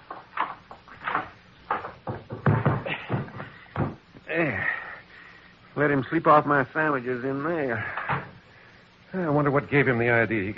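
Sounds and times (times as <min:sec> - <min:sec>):
closet door opening and closing: 0:00.1 - 0:04.0, 0:07.9 - 0:08.4
speech: 0:05.8 - 0:08.2, 0:09.1 - 0:10.5.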